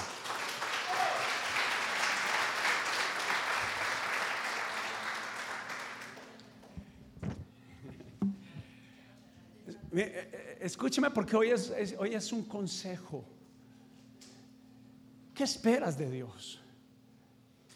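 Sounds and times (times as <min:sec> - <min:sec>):
audience applause: 0:00.0 - 0:06.8
speech: 0:10.0 - 0:13.4, 0:15.4 - 0:16.6.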